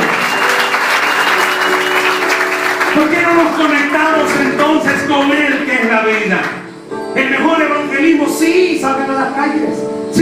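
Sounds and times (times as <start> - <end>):
audience applause: 0.0 - 6.6
speech: 3.0 - 10.1.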